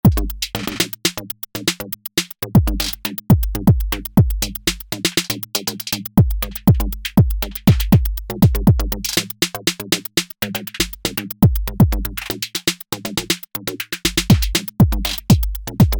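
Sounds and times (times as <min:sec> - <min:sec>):
drums: 0:00.0 - 0:15.9.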